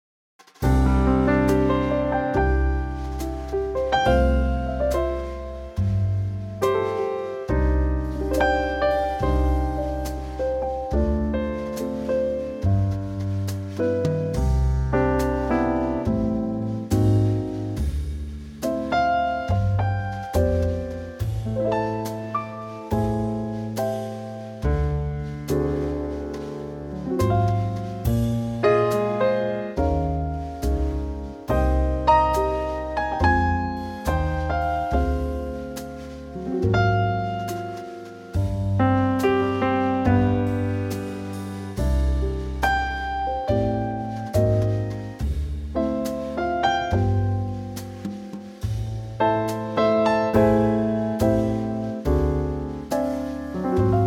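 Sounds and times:
trio music in C: 0.5 - 54.0.

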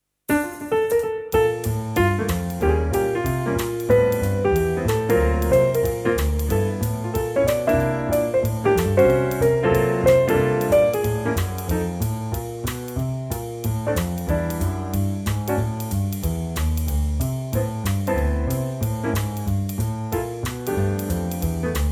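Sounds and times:
backing track in F for male vocals: 0.3 - 21.9.

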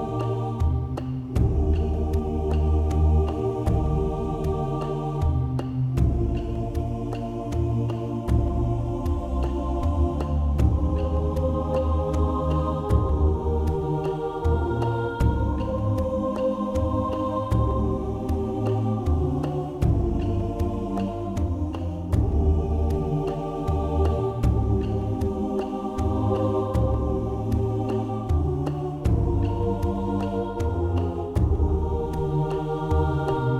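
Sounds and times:
choir singing a carol in Eb: 0.0 - 33.5
percussion: 0.0 - 33.5.

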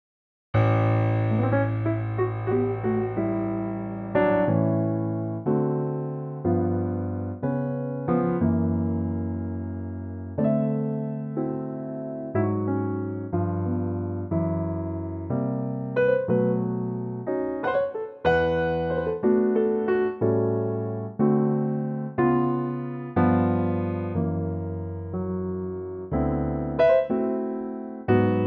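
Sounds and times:
piano: 0.6 - 28.4.

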